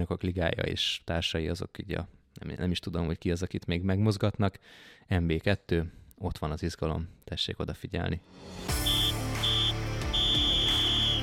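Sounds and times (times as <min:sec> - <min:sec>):
speech: 0:00.0 - 0:09.0
referee's triple whistle ending the match: 0:08.8 - 0:11.2.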